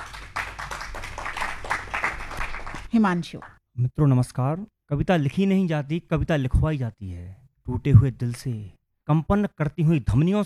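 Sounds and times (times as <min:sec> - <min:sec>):
audience clapping to welcome a poet onto the stage: 0:00.0 - 0:03.6
speech: 0:02.9 - 0:10.4.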